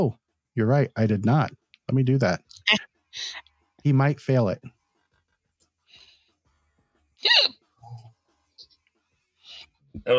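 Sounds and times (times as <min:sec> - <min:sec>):
speech: 0:00.0 - 0:04.8, 0:10.0 - 0:10.1
hiccup: 0:07.2 - 0:08.0.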